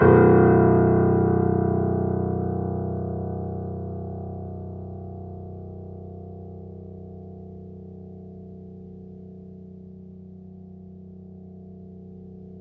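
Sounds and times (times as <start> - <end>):
grand piano: 0.0 - 7.7.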